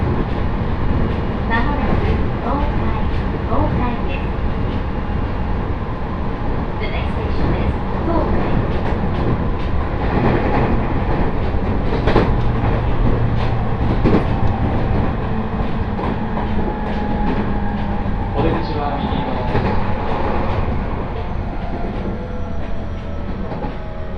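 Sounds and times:
Joban Line train rumble: 0.0s - 24.1s
rail clicks and squeals: 6.9s - 24.1s.

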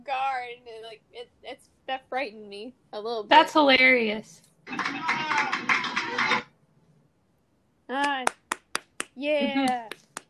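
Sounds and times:
speech: 2.2s - 5.6s, 7.9s - 8.4s, 9.2s - 10.0s
canned applause sound effect: 4.7s - 6.5s, 8.0s - 10.2s.

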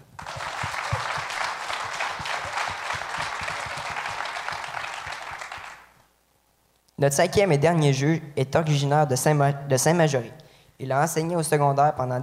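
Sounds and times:
audience applause: 0.0s - 5.9s
speech: 7.0s - 12.2s.

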